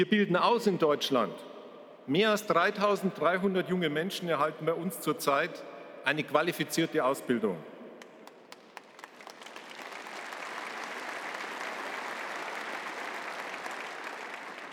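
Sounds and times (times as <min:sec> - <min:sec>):
speech: 0:00.0 - 0:01.5, 0:02.1 - 0:07.7
audience applause: 0:08.0 - 0:14.7.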